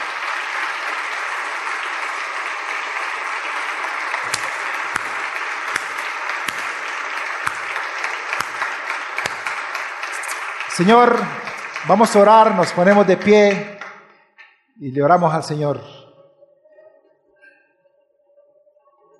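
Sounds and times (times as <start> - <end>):
church congregation applauding: 0.0 - 13.9
speech: 10.8 - 13.7, 14.8 - 16.0.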